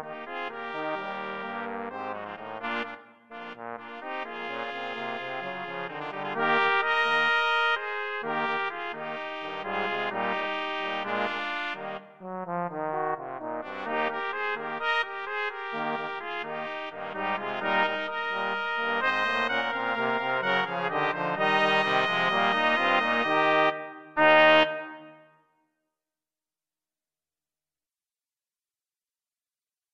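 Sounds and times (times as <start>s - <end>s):
brass quartet playing rock: 0.0s - 25.2s.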